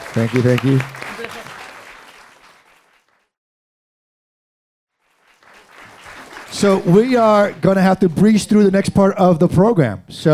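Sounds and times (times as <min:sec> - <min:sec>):
audience applause: 0:00.0 - 0:03.3, 0:05.0 - 0:08.8
speech: 0:00.2 - 0:01.0, 0:06.6 - 0:10.3.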